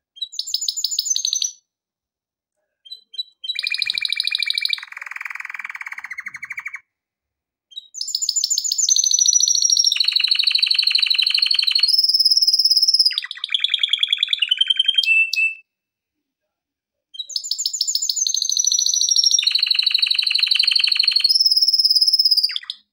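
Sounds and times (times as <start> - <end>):
canary trilling: 2.9 - 6.8, 7.7 - 15.6, 17.2 - 22.9.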